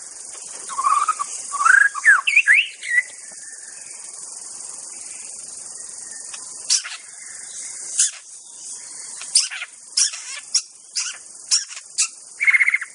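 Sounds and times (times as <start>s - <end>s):
constant high background hiss: 0.0s - 12.9s
white-rumped shama whistling song: 0.7s - 3.7s, 6.0s - 12.9s.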